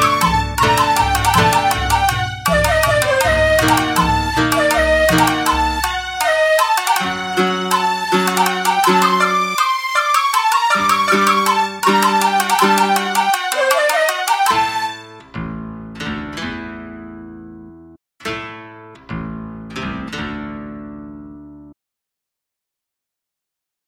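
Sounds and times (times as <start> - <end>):
shamisen and koto music with an Arabian town feel: 0.0 - 17.0, 19.6 - 20.7.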